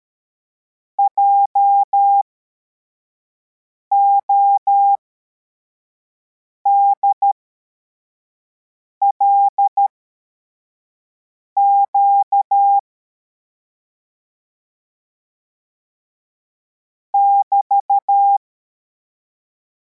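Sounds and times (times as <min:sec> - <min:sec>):
CW morse code beeps: 0:01.0 - 0:02.2, 0:03.9 - 0:05.0, 0:06.7 - 0:07.4, 0:09.1 - 0:09.9, 0:11.6 - 0:12.8, 0:17.2 - 0:18.4.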